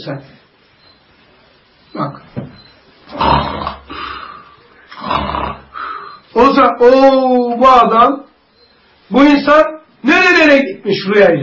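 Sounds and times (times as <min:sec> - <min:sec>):
speech: 0:00.0 - 0:00.4, 0:01.9 - 0:02.3, 0:06.6 - 0:08.2, 0:09.1 - 0:11.4
snoring: 0:03.1 - 0:06.2.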